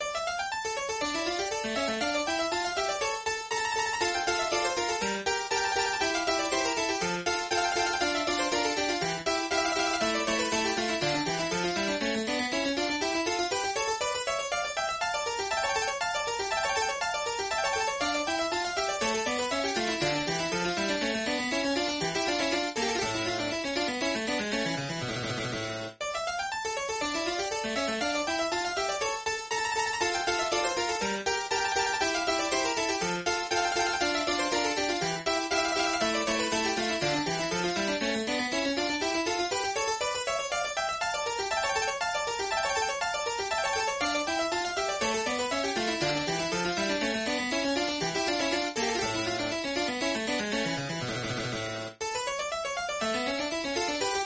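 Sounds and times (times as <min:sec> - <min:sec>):
harpsichord sonata in D minor: 0:00.0 - 0:54.2.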